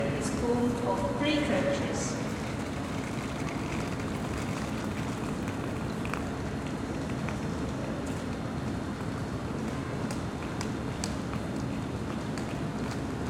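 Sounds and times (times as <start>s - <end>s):
train station ambience: 0.0s - 13.2s.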